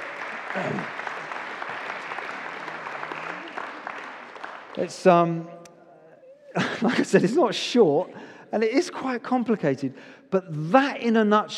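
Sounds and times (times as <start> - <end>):
group applauding: 0.0 - 5.4
speech: 0.6 - 1.0, 4.8 - 5.6, 6.8 - 11.5
laughter: 6.5 - 8.1.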